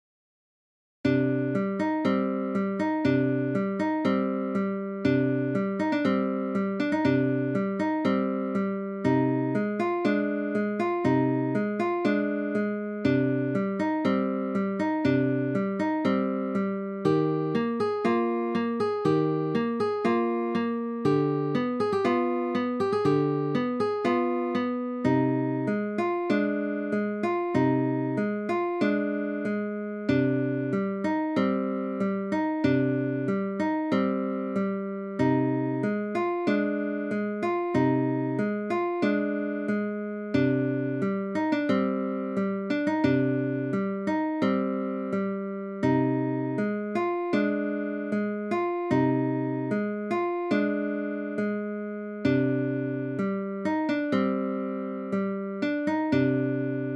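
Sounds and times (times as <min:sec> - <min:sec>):
guitar piece: 0:01.1 - 0:56.9.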